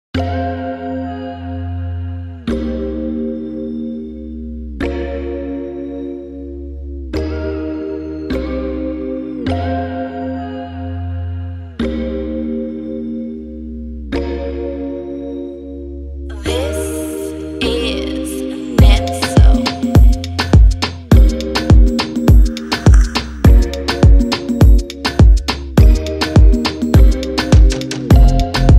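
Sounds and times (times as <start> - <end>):
dancehall pop beat: 16.3 - 28.7.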